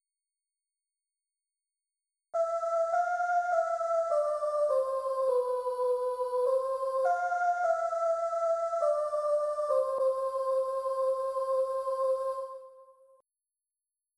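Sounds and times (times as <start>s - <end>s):
Christmas MIDI soprano melody: 2.4s - 12.9s.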